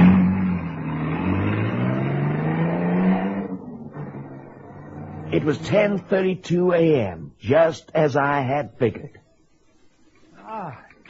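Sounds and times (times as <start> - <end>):
car engine roaring as it drives away: 0.0 - 6.5
speech: 5.4 - 9.2, 10.5 - 11.0.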